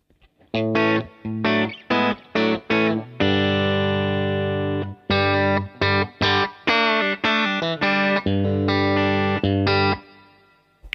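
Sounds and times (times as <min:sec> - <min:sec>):
electric guitar through slightly overdriven amp: 0:00.4 - 0:10.5.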